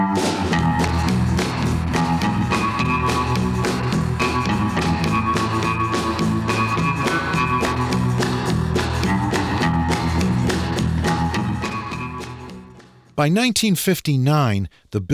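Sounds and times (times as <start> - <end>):
semi-hollow body electric guitar with Bigsby vibrato, tremolo and heavy reverb: 0.1 - 12.8
speech: 13.2 - 15.1.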